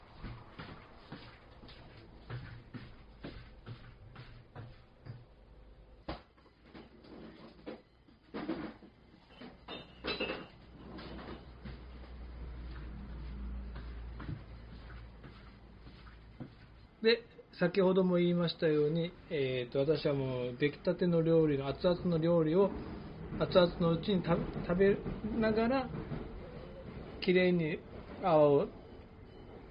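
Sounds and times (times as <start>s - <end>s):
dishware clinking as a sundubu rice bowl is moved to the table: 9.6s - 10.6s
speech: 17.0s - 26.2s, 27.2s - 28.8s.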